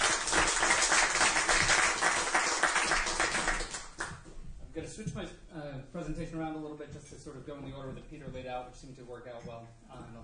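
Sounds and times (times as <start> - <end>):
audience applause: 0.0 - 4.2
speech: 5.0 - 10.2.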